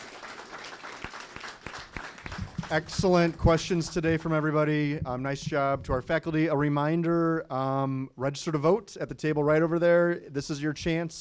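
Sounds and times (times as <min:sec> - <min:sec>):
audience applause at a faculty panel discussion on the 2016 election: 0:00.0 - 0:04.0
sharper low thumps: 0:02.3 - 0:06.3
speech: 0:02.7 - 0:11.1.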